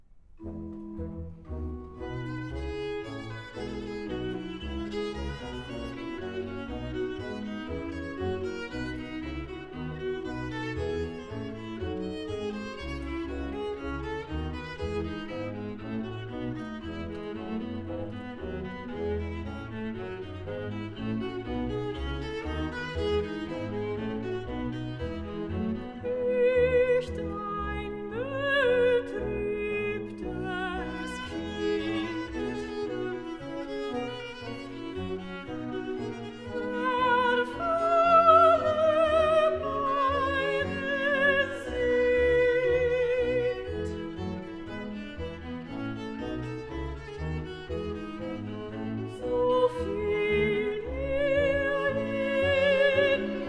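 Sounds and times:
chorale: 0:00.0 - 0:53.4.

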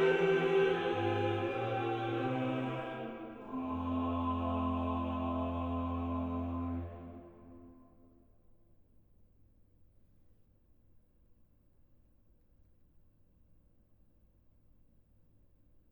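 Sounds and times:
organ chorale: 0:00.0 - 0:07.8.

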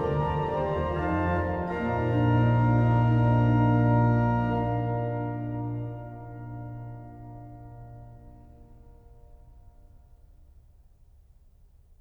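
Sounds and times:
organ fughetta: 0:00.0 - 0:08.7.

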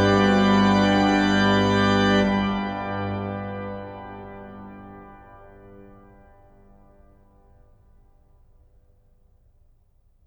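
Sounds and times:
organ: 0:00.0 - 0:06.5.

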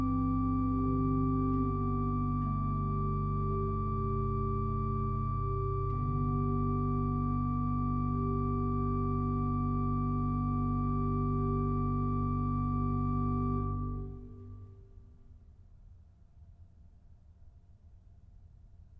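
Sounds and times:
organ chorale prelude: 0:00.0 - 0:14.8.

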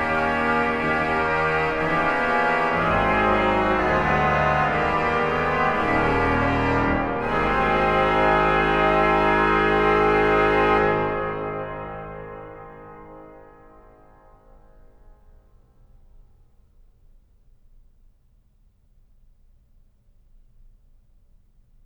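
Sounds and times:
organ chorale: 0:00.0 - 0:13.6.

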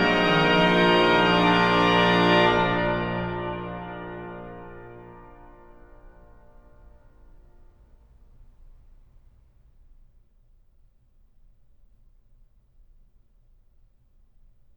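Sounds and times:
organ playing chorale preludes: 0:00.0 - 0:07.4.

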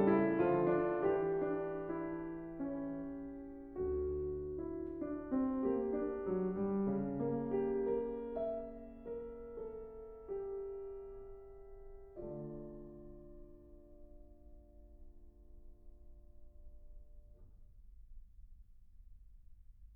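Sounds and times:
prelude in D minor: 0:00.0 - 0:14.6.

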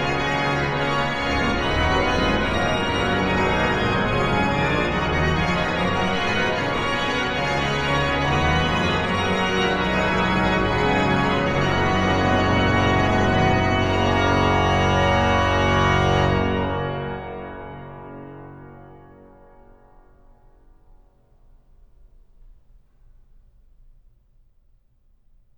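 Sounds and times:
organ hymn: 0:00.0 - 0:20.4.

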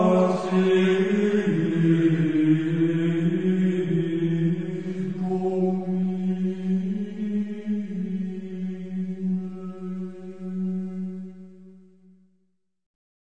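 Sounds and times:
Gregorian chant: 0:00.0 - 0:09.3.

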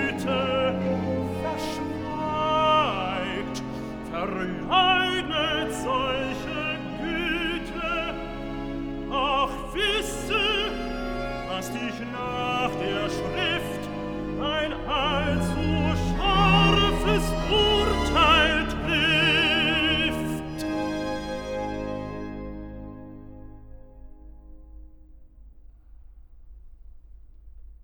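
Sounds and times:
tenor singing recitative: 0:00.0 - 0:21.7.

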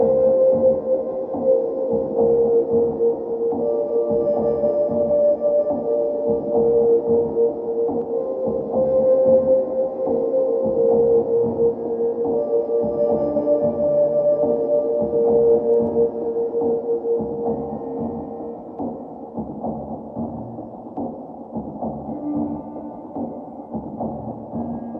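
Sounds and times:
ambient sine wave music: 0:00.0 - 0:24.9.

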